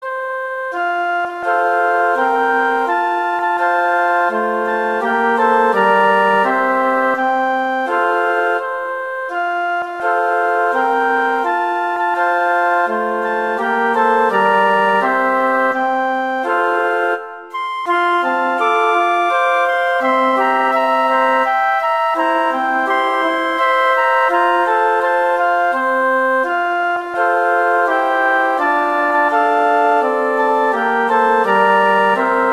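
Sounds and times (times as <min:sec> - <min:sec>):
flute playing a Christmas tune: 0:00.0 - 0:32.5.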